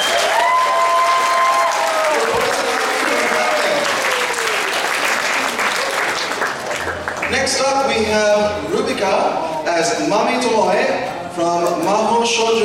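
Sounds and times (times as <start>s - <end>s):
audience applause: 0.0s - 7.6s
speech: 7.4s - 12.6s.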